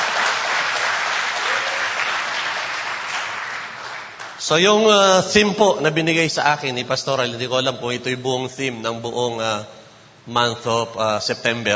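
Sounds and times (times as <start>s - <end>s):
church congregation applauding: 0.0s - 4.6s
speech: 4.5s - 11.7s.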